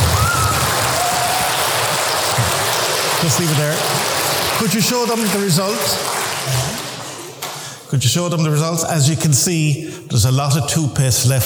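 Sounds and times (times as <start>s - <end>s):
audience applause: 0.0s - 7.7s
speech: 3.3s - 4.0s, 4.6s - 6.8s, 7.9s - 11.4s.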